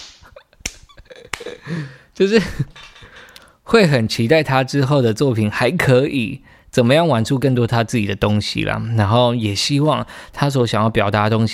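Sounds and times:
hand claps: 0.0 - 1.6
speech: 1.7 - 2.9, 3.7 - 11.5.

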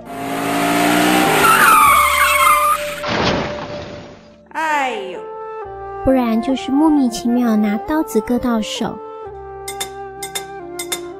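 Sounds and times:
motorcycle engine roaring: 0.0 - 3.0
tires squealing in a skid: 0.0 - 4.2
motorcycle crashing down: 1.2 - 4.4
speech: 6.1 - 9.1.

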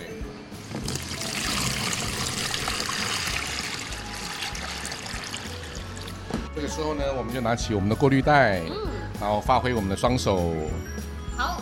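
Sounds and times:
water pouring into a container for making aiyu jelly: 0.8 - 6.3
speech: 6.6 - 11.5.

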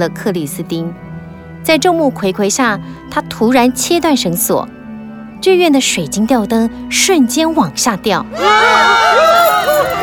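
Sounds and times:
speech: 0.0 - 4.8, 5.4 - 10.0
crowd screaming in panic: 8.3 - 10.0.

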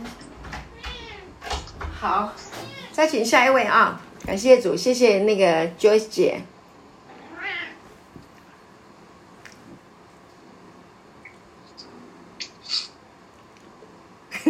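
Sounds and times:
cat meowing: 0.7 - 1.4, 2.4 - 3.0, 7.2 - 7.8
speech: 2.0 - 6.5.

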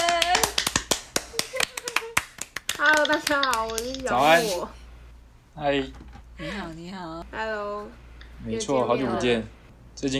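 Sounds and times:
applause: 0.0 - 3.4
speech: 3.1 - 4.8, 5.6 - 10.1.

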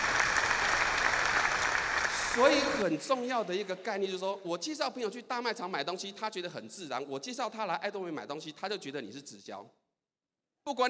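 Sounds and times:
audience applause: 0.0 - 2.9
speech: 2.4 - 9.8, 10.6 - 10.8.

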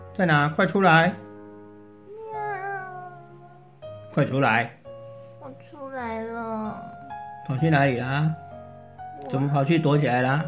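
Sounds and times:
speech: 0.2 - 1.2, 4.2 - 4.8, 5.4 - 8.4, 9.2 - 10.4
cat meowing: 2.1 - 3.7.

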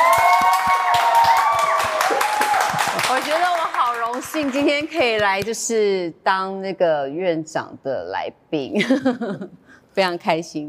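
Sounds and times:
audience applause: 0.0 - 5.1
speech: 4.2 - 10.6.

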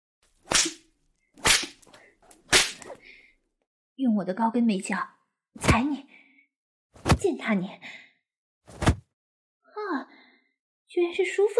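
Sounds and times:
whip cracking: 0.5 - 0.8, 1.4 - 1.9, 2.5 - 3.0
speech: 4.0 - 6.1, 7.2 - 8.0, 9.8 - 10.1, 10.9 - 11.5.

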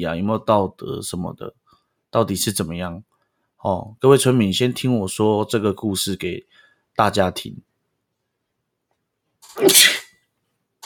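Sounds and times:
speech: 0.0 - 7.7, 9.6 - 10.0
loud sneeze: 9.6 - 10.2.

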